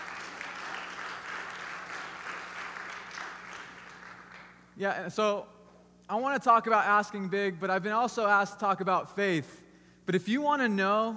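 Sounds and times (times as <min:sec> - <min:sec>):
audience applause: 0:00.0 - 0:04.6
speech: 0:04.8 - 0:11.1.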